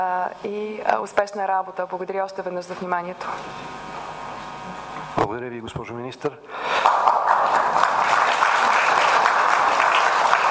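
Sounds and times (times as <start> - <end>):
speech: 0.0 - 3.9, 4.7 - 7.6
audience applause: 6.6 - 10.5.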